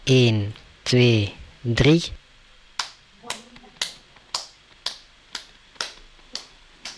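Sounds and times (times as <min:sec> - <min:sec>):
speech: 0:00.1 - 0:02.2
group clapping hands: 0:02.7 - 0:06.9.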